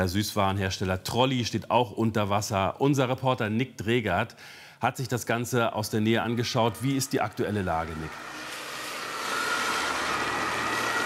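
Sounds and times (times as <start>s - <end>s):
speech: 0.0s - 8.4s
emergency vehicles driving past in Wittenburg: 7.8s - 11.0s.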